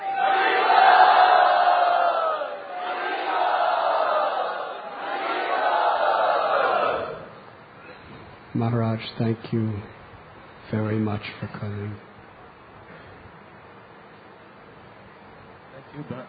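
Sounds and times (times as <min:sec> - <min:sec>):
crowd cheering a welcome for a returning swami at Sri Radha Gopinath Mandir: 0:00.0 - 0:07.4
speech: 0:08.6 - 0:10.0, 0:10.7 - 0:12.1, 0:16.0 - 0:16.2.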